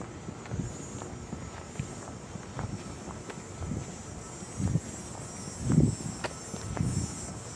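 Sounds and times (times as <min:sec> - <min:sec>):
cicadas buzzing: 0:00.0 - 0:07.5.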